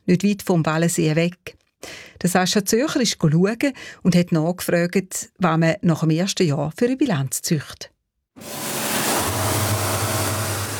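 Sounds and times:
speech: 0.1 - 8.7
high-pressure cleaner spraying a motorboat hull: 8.4 - 10.7.

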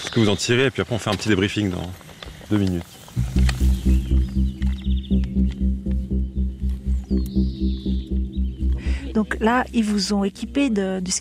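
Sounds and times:
speech: 0.2 - 3.9, 9.2 - 11.1
common bird singing a stuttering trill and buzzy high note: 3.2 - 11.1
loud steady rhythmic low throbbing: 3.2 - 11.1.

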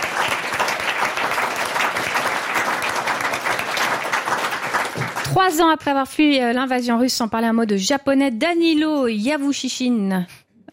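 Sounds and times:
audience applause: 0.0 - 5.6
speech: 5.4 - 10.7.

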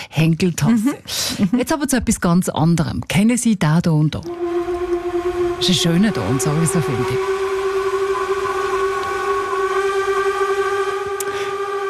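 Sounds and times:
speech: 0.1 - 4.6, 5.6 - 7.4
steamship horn: 4.3 - 11.8.

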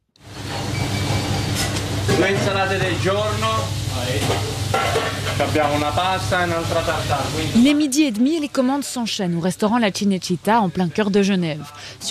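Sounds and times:
guanciale sizzling in a frying pan for carbonara in a busy Geneva restaurant kitchen: 1.3 - 8.7
speech: 2.2 - 12.0.

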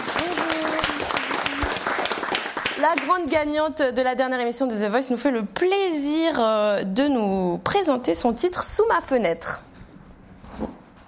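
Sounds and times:
crowd clapping and cheering: 0.0 - 3.2
speech: 2.8 - 9.7.

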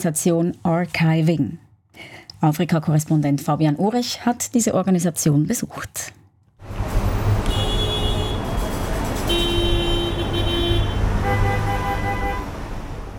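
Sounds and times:
speech: 0.0 - 6.2
dense city street traffic rumbling: 6.4 - 13.1
car horns honking: 7.3 - 12.6.

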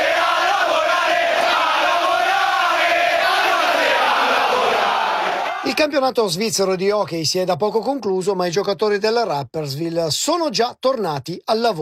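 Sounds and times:
hockey fans chanting: 0.0 - 5.8
speech: 5.8 - 11.7.

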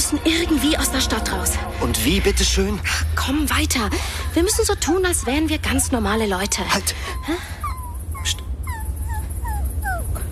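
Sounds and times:
speech: 0.1 - 7.6, 8.2 - 8.4
dog whimpering: 3.9 - 10.2.

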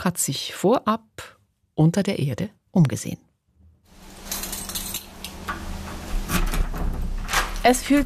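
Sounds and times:
speech: 0.0 - 3.2, 7.6 - 8.0
thick airlock door pushed open: 5.5 - 7.7.

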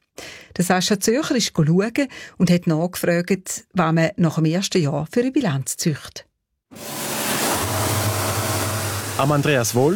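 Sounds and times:
speech: 0.6 - 7.0, 9.2 - 9.9
high-pressure cleaner spraying a motorboat hull: 6.8 - 9.9.

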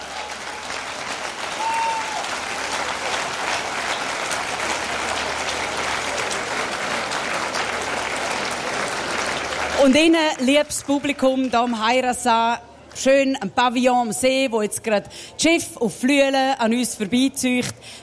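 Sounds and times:
crowd applauding: 0.0 - 11.9
speech: 9.8 - 18.0.

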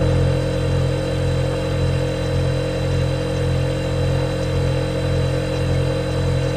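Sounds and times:
American refrigerator humming: 0.0 - 6.5.

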